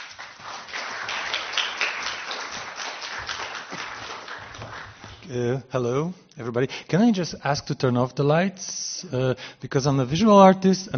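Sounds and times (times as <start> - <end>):
audience applause: 0.0 - 5.3
speech: 5.3 - 10.9.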